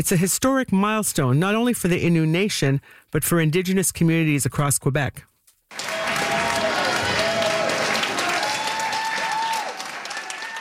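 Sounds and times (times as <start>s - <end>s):
speech: 0.0s - 5.9s
crowd applauding: 5.7s - 10.5s.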